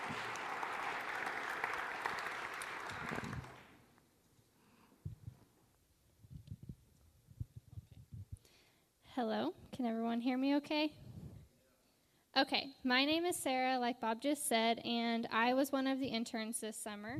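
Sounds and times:
audience applause: 0.0 - 3.8
speech: 9.2 - 11.0, 12.4 - 17.1.

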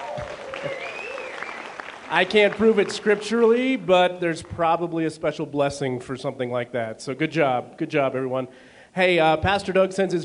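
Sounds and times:
audience applause: 0.0 - 3.8
speech: 2.1 - 10.2.

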